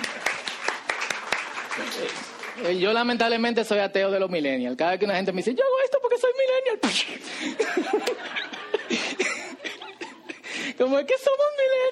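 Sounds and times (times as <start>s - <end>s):
crowd applause: 0.0s - 2.7s
speech: 1.8s - 8.3s, 10.8s - 11.9s
laughter: 7.4s - 10.6s.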